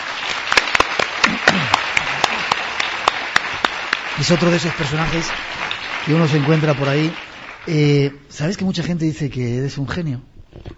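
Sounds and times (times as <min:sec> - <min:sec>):
audience applause: 0:00.0 - 0:08.2
speech: 0:04.2 - 0:10.7.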